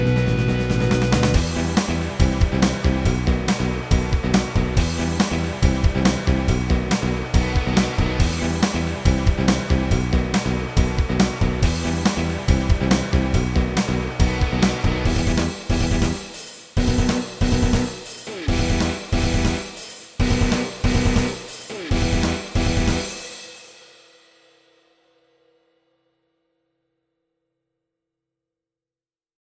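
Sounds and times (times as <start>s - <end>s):
blues rock backing track: 0.0s - 23.3s.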